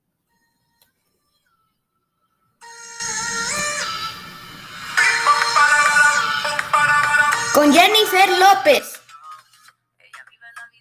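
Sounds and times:
excerpt of a new pop single: 2.6 - 10.7
speech: 7.6 - 8.9.

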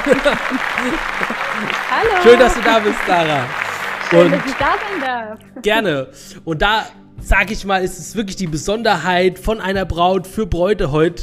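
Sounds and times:
voices calling and laughing: 0.0 - 5.1
audience applause: 0.0 - 5.2
speech: 0.0 - 11.2.

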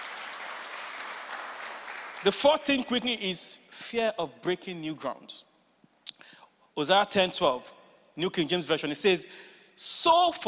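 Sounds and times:
audience clapping: 0.0 - 3.2
speech: 2.2 - 5.5, 6.8 - 10.4.

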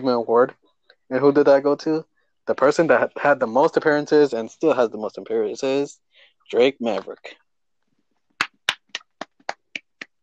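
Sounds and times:
speech: 0.0 - 7.4
hand claps: 8.4 - 10.2.

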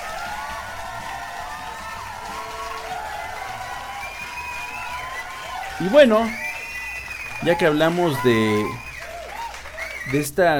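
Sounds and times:
audience applause: 0.0 - 10.5
speech: 5.8 - 6.4, 7.4 - 8.9, 10.1 - 10.5.

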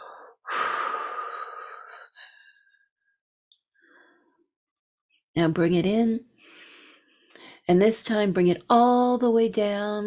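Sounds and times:
deep breath in and out during a guided breathing meditation: 0.0 - 3.0, 6.4 - 7.6
speech: 5.4 - 6.3, 7.7 - 10.0.

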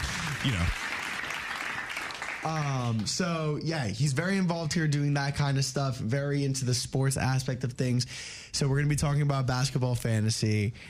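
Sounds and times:
people clapping: 0.0 - 3.4
speech: 0.4 - 0.9, 2.4 - 10.8.

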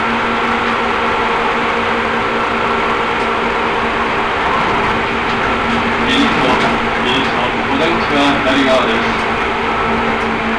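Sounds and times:
Seibu Railway train Hon-Kawagoe to Ome-Kaido: 0.0 - 10.5.

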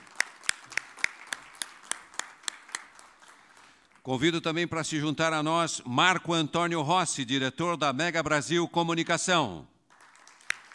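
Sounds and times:
sparse applause: 0.0 - 4.2, 9.9 - 10.7
speech: 4.0 - 9.7.

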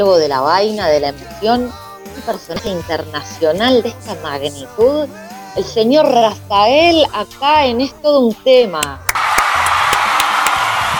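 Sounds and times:
speech: 0.0 - 9.1
audience applause: 9.1 - 10.9.

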